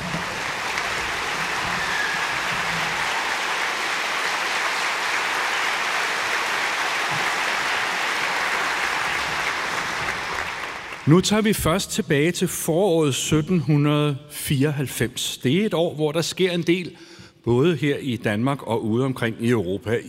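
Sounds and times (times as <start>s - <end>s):
large crowd applauding an orchestra: 0.0s - 11.3s
speech: 11.1s - 20.0s.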